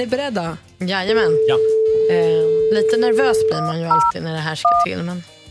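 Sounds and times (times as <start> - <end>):
speech: 0.0 - 5.3
telephone dialing and ringing tones: 1.4 - 4.1.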